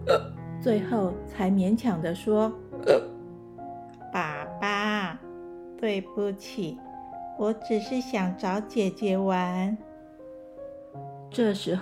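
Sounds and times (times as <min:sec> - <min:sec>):
voice imitating hiccups: 0:00.0 - 0:00.3, 0:02.8 - 0:03.2
speech: 0:00.0 - 0:03.2, 0:05.8 - 0:06.8, 0:07.4 - 0:09.9, 0:11.3 - 0:11.8.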